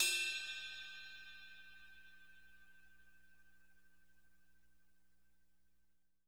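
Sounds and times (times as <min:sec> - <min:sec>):
crash cymbal bell: 0:00.0 - 0:03.0.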